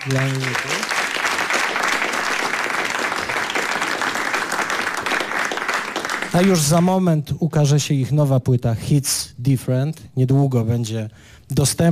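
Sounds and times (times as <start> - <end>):
speech: 0.0 - 0.9, 6.3 - 11.9
loud sustained crowd applause: 0.0 - 6.8.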